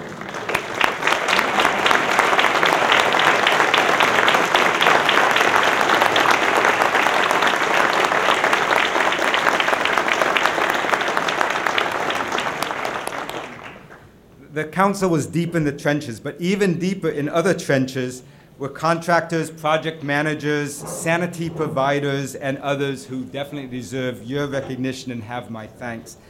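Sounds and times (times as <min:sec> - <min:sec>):
audience applause: 0:00.0 - 0:14.2
speech: 0:14.7 - 0:26.2.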